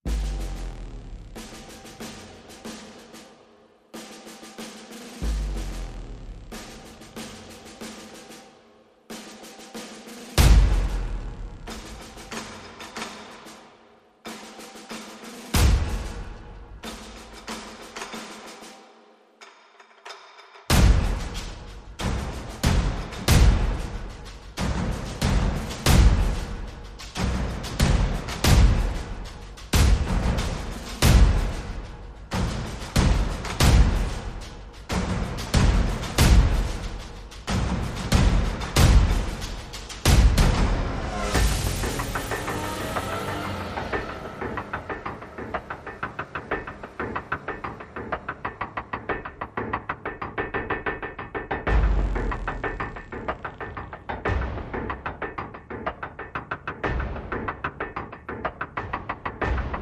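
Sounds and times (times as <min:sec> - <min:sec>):
percussion: 0:00.0 - 0:59.7
sound effects: 0:40.4 - 0:47.9.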